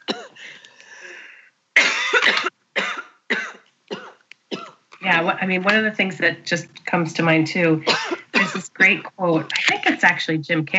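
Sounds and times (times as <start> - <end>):
person coughing from a tickle in the throat: 0.0 - 0.6, 1.8 - 4.8, 7.8 - 9.8
speech: 5.2 - 10.7.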